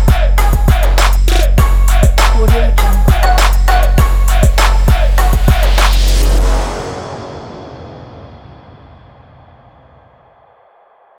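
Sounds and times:
twerk music: 0:00.0 - 0:07.6.

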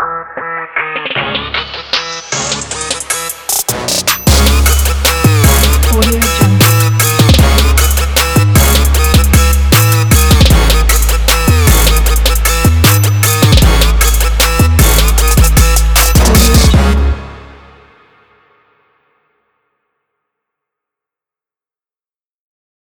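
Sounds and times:
hip hop trap sport logo music: 0:00.0 - 0:17.9.

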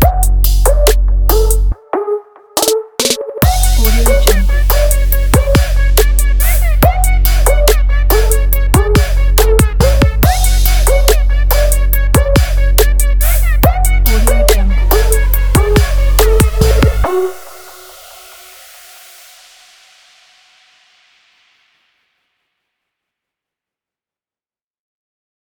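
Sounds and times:
aggressive trap beat: 0:00.0 - 0:01.8, 0:02.6 - 0:18.8.

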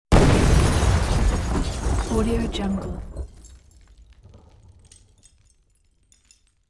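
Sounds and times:
explosion: 0:00.1 - 0:05.0
massive glass debris: 0:00.1 - 0:06.6.

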